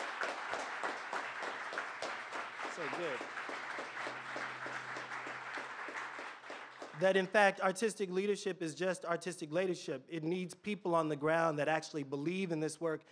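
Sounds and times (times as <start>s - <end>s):
audience applause: 0.0s - 7.3s
speech: 2.8s - 3.5s, 7.0s - 13.0s.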